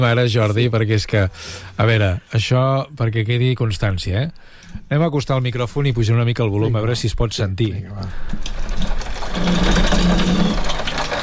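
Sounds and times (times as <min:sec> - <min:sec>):
speech: 0:00.0 - 0:10.5
heavy rain beating on a window in Barcelona: 0:08.2 - 0:11.2.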